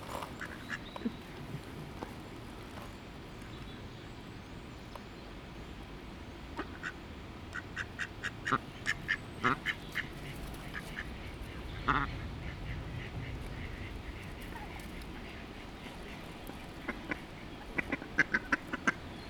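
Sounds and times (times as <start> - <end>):
ducks quacking: 0.1 - 2.2, 6.6 - 19.2.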